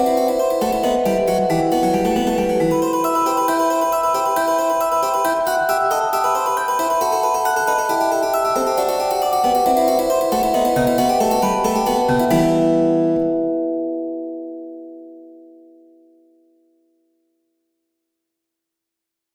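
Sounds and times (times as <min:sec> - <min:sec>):
celesta: 0:00.0 - 0:13.6
harpsichord: 0:00.0 - 0:13.9.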